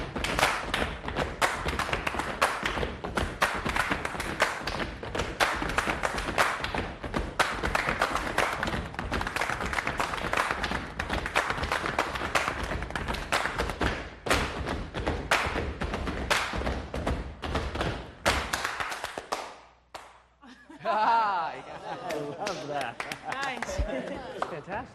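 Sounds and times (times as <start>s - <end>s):
stomp percussion with hands and feet: 0.0s - 19.4s
laughter: 20.4s - 24.9s.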